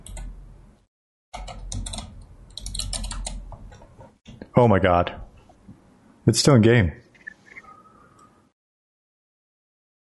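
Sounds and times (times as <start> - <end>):
typing on a computer keyboard: 1.4 - 3.6
speech: 4.6 - 5.3, 6.3 - 7.0.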